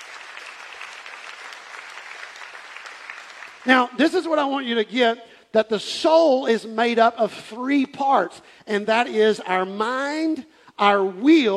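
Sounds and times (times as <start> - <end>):
audience clapping: 0.0 - 4.0
speech: 3.6 - 11.5.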